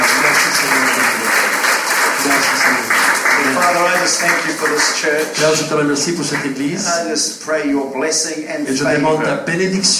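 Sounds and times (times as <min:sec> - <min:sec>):
audience clapping: 0:00.0 - 0:06.9
speech: 0:03.6 - 0:09.9.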